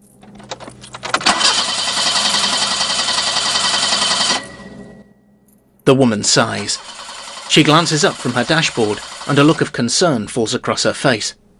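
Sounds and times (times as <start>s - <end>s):
black BMW engine cranking as the key is turned in a car park: 0.0s - 4.4s, 6.3s - 9.8s
speech: 5.9s - 11.4s.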